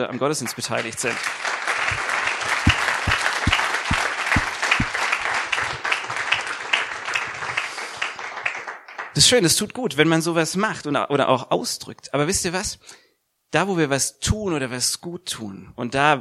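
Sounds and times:
speech: 0.0 - 2.1, 9.2 - 16.1
audience applause: 0.5 - 9.2.

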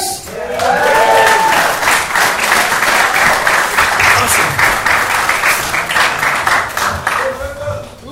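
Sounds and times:
clapping and cheering: 0.2 - 7.6
whooping voices: 0.3 - 1.9.

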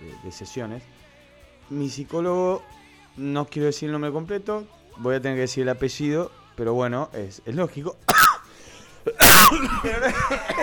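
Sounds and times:
speech: 0.3 - 8.2, 9.5 - 10.6
person coughing close to the microphone: 8.1 - 8.4, 9.2 - 9.5.

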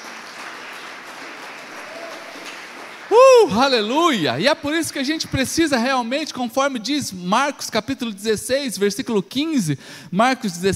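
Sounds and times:
audience applauding: 0.0 - 5.8
speech: 3.4 - 10.7.

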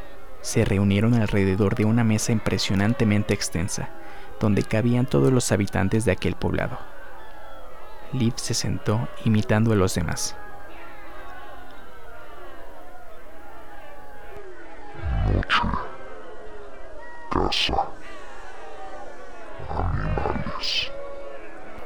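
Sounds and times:
speech: 0.4 - 6.9, 8.1 - 10.4
goblin growling: 15.0 - 16.0, 17.3 - 18.0, 19.6 - 20.9.

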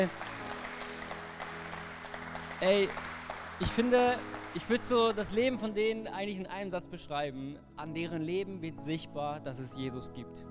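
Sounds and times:
speech: 0.0 - 0.2, 2.6 - 10.4
audience applause: 0.0 - 5.6.

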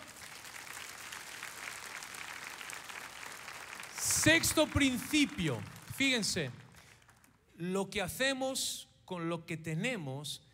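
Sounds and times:
audience applause: 0.0 - 7.3
speech: 4.2 - 6.6, 7.6 - 10.5.

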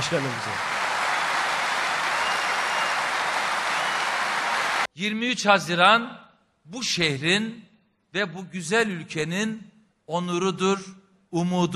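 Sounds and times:
audience applause: 0.0 - 4.9
speech: 0.1 - 0.8, 5.0 - 11.7.

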